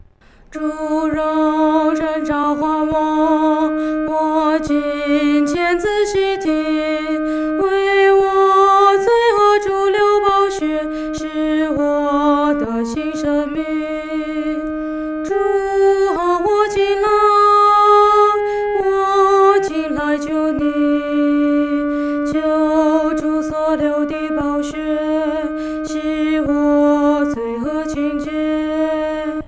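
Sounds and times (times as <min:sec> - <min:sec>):
solo singing, second voice: 0:00.5 - 0:29.4.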